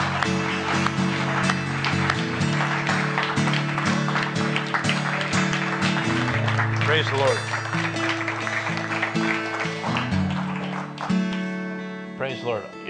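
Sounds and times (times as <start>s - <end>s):
church crowd clapping: 0.0s - 12.4s
speech: 7.0s - 7.6s, 12.4s - 12.8s.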